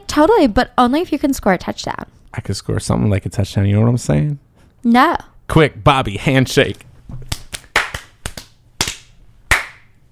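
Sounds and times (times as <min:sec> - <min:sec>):
speech: 0:00.2 - 0:07.3
punches landing on skin: 0:07.2 - 0:09.8.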